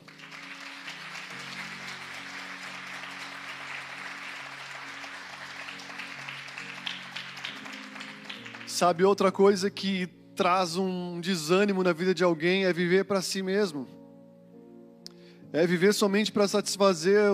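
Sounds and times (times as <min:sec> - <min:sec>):
audience applauding: 0:00.0 - 0:09.0
speech: 0:08.8 - 0:14.0, 0:15.5 - 0:17.3.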